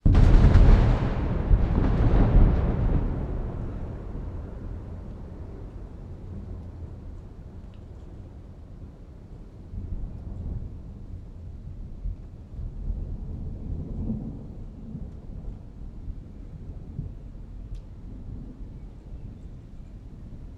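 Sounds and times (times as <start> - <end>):
lightning strike impact: 0.0 - 5.4.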